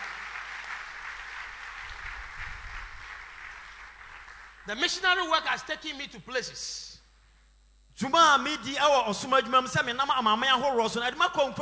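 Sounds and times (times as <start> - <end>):
audience clapping: 0.0 - 4.8
speech: 4.7 - 7.0, 8.0 - 11.6.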